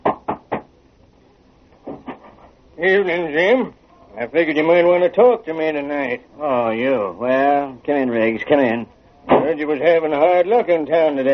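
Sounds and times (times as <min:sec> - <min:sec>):
knocking on a house door: 0:00.0 - 0:00.7
speech: 0:02.8 - 0:11.3.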